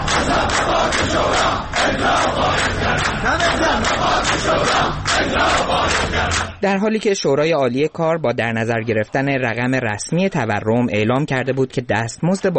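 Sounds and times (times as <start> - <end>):
protesting retirees shouting in the street: 0.0 - 6.6
speech: 3.2 - 12.5.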